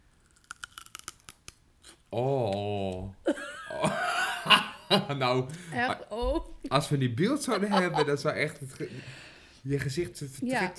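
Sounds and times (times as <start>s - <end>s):
biting into crunchy celery: 0.0s - 3.0s
speech: 2.1s - 3.4s, 4.9s - 10.7s
laughter: 2.2s - 10.7s.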